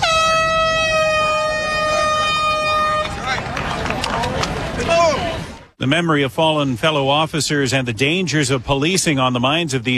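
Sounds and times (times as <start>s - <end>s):
air horn blast starting the National Peace Officers Memorial Run in Toronto: 0.0s - 3.3s
crowd noise with voices: 1.2s - 9.9s
speech: 5.8s - 9.9s.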